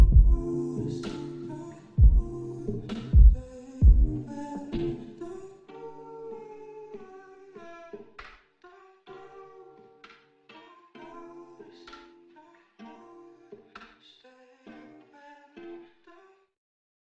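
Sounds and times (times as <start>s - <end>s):
3D hip hop music: 0.0s - 5.8s.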